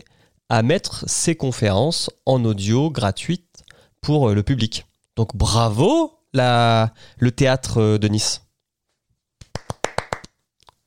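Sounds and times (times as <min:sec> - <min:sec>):
speech: 0:00.0 - 0:08.4
hand clapping: 0:09.4 - 0:10.4.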